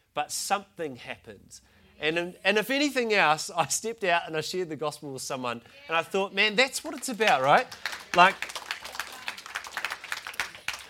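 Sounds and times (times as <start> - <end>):
speech: 0.2 - 8.6
audience clapping: 6.6 - 10.8.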